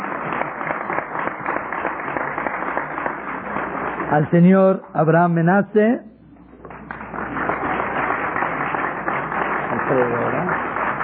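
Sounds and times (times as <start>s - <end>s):
audience applause: 0.0s - 4.4s, 6.6s - 11.0s
speech: 4.1s - 6.1s.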